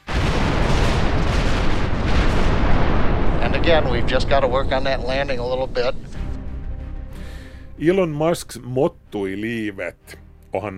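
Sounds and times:
rocket explosion: 0:00.0 - 0:07.9
speech: 0:03.7 - 0:06.1, 0:07.8 - 0:10.7.

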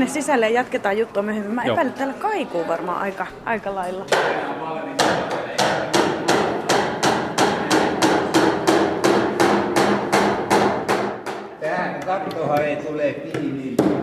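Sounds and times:
speech: 0:00.0 - 0:05.3, 0:12.1 - 0:14.0
hammer striking nails into a wooden birdhouse: 0:05.0 - 0:12.7, 0:13.3 - 0:14.0.

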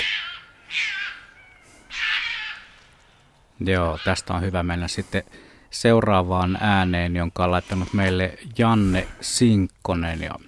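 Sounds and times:
roe deer barking: 0:00.0 - 0:04.5
speech: 0:03.6 - 0:10.4.

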